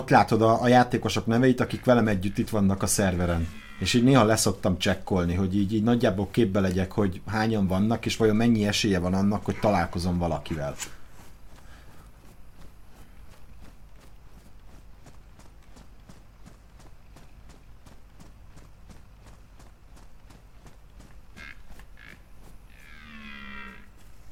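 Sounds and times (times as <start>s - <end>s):
deer calling: 0.0s - 4.7s, 5.4s - 11.0s, 21.3s - 24.1s
speech: 0.0s - 11.0s.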